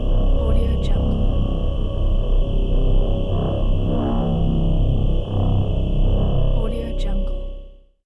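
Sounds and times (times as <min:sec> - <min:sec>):
scifi ambience: 0:00.0 - 0:07.8.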